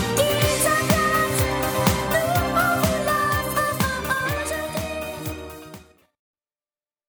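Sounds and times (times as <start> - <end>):
little girl singing: 0.2 - 1.4, 2.1 - 5.3.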